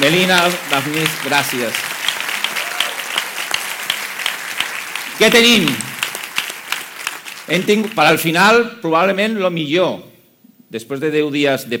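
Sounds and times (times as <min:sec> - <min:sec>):
speech: 0:00.0 - 0:01.9, 0:05.2 - 0:05.9, 0:07.5 - 0:10.1, 0:10.7 - 0:11.7
audience applause: 0:00.0 - 0:08.5.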